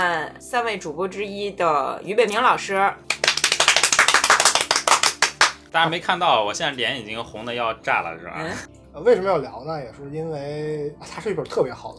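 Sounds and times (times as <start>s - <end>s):
speech: 0.0s - 3.3s, 5.7s - 11.9s
hand clapping applause: 3.0s - 5.7s.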